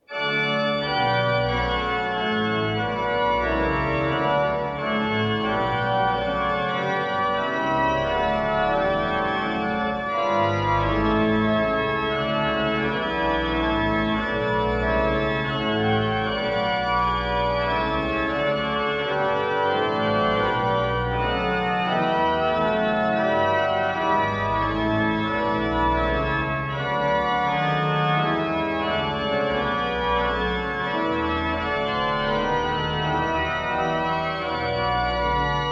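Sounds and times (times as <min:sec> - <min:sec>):
chorale prelude music: 0:00.1 - 0:35.7.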